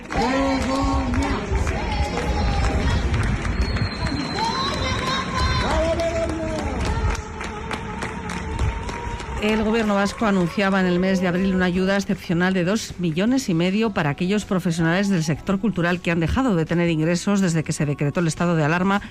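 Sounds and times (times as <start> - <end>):
neighbours applauding from balconies: 0.0 - 11.7
speech: 9.4 - 19.0.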